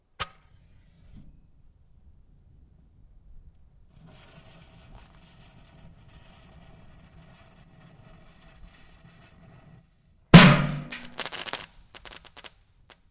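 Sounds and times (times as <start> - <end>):
fountain fireworks in a metal can being detonated: 10.4 - 12.6.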